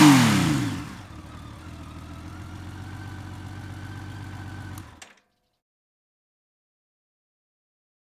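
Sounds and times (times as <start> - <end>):
motorcycle engine: 0.0 - 5.2.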